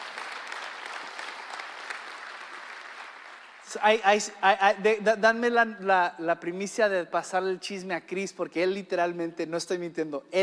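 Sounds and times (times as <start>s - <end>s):
audience clapping: 0.0s - 4.4s
speech: 3.7s - 10.4s.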